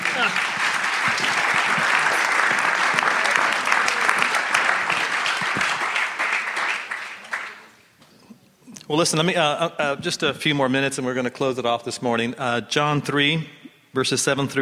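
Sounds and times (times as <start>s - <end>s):
audience applause: 0.0s - 7.8s
speech: 0.2s - 0.5s, 8.9s - 14.6s.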